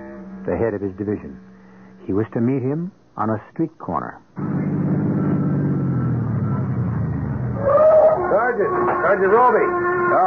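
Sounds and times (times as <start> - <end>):
brief higher whine: 0.0 - 2.3, 4.4 - 10.2
speech: 0.5 - 1.5, 2.1 - 4.5, 8.6 - 10.2
car engine running as it pulls up at a street corner: 4.4 - 7.7.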